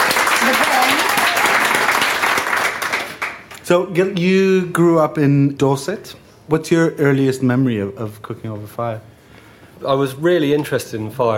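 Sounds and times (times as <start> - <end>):
audience round of applause: 0.0 - 3.5
speech: 3.7 - 9.1, 9.8 - 11.3.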